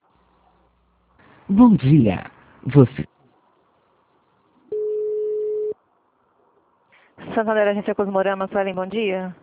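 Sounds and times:
speech: 1.5 - 3.1, 7.4 - 9.4
telephone tone after a dropped call: 4.7 - 5.8.

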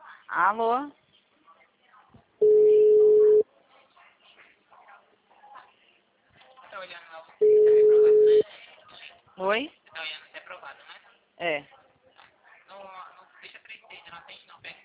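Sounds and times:
speech: 0.3 - 1.0, 9.4 - 10.8, 11.4 - 11.8
telephone ringing tone on a line: 2.4 - 3.4, 7.4 - 8.4.

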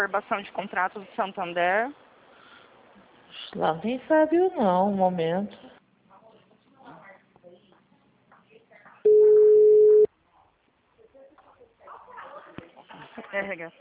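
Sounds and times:
speech: 0.0 - 2.0, 3.4 - 5.8, 13.3 - 13.7
dropped-call tone on a phone call to Santander's HR department: 9.1 - 10.1.

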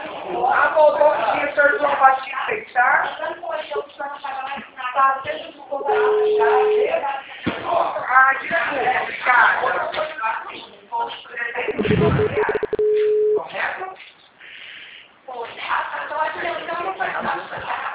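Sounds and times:
people talking: 0.0 - 14.0, 15.3 - 17.9
telephone tone after a dropped call: 5.9 - 6.9, 11.8 - 13.5.

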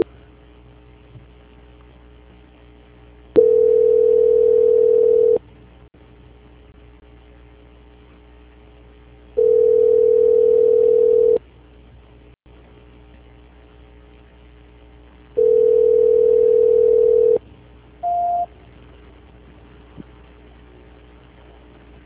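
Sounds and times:
faint constant telephone line hum: 0.0 - 22.0
telephone line tones while a call is being transferred: 3.4 - 5.4, 9.4 - 11.4, 15.4 - 17.4, 18.0 - 18.5.

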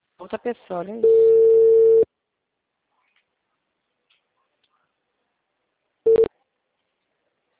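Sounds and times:
speech: 0.3 - 1.6
busy tone after a dropped phone call: 1.0 - 2.1, 6.1 - 6.3.

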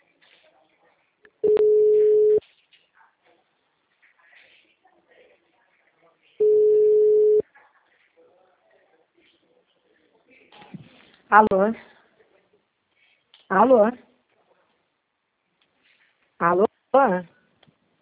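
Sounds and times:
telephone busy signal: 1.4 - 2.4, 6.4 - 7.4
speech: 11.3 - 11.9, 13.5 - 14.1, 16.4 - 17.4.

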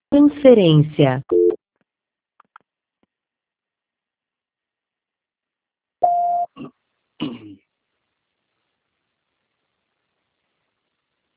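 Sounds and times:
speech: 0.1 - 1.4
voicemail beep after a recorded greeting: 6.0 - 6.5.

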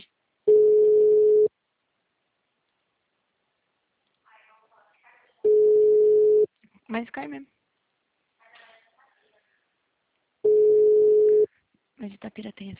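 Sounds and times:
telephone ringback tone while calling someone: 0.5 - 1.5, 5.5 - 6.5, 10.4 - 11.5
speech: 6.9 - 7.6, 12.0 - 12.7.

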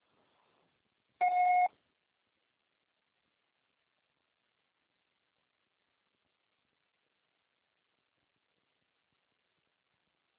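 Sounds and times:
voicemail beep tone: 1.2 - 1.7.

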